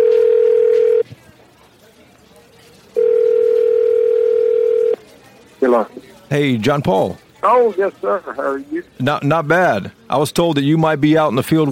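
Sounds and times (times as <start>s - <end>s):
telephone ringback tone as a call is placed: 0.0s - 1.0s, 3.0s - 5.0s
speech: 6.3s - 11.7s.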